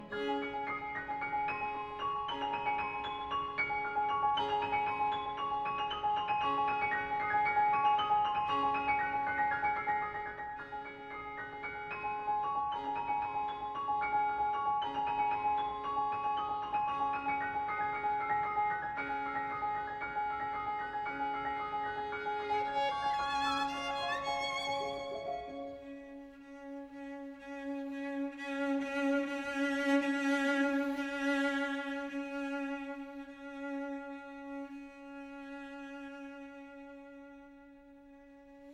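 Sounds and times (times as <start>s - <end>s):
piano trio playing in A minor: 0.0s - 35.0s.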